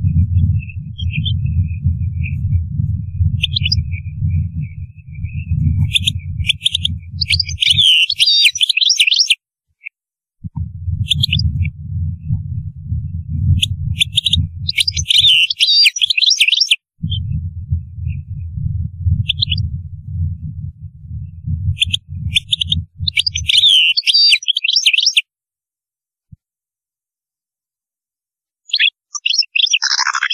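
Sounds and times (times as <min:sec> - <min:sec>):
low rumble: 0:00.0 - 0:08.1, 0:10.4 - 0:15.5, 0:17.0 - 0:23.7
European goldfinch song: 0:00.1 - 0:02.6, 0:03.4 - 0:09.4, 0:11.0 - 0:11.6, 0:13.4 - 0:17.3, 0:19.3 - 0:19.6, 0:21.8 - 0:25.2, 0:28.7 - 0:30.3.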